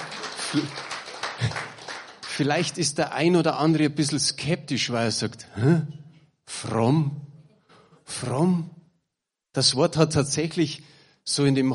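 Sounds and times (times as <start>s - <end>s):
audience clapping: 0.0s - 3.4s
speech: 0.5s - 1.5s, 2.4s - 7.3s, 8.1s - 8.8s, 9.6s - 11.7s.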